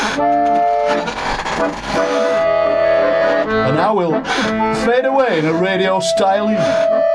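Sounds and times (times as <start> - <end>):
squeaky chair squeaking: 0.0 - 2.5
speech: 1.6 - 2.3, 3.6 - 7.0.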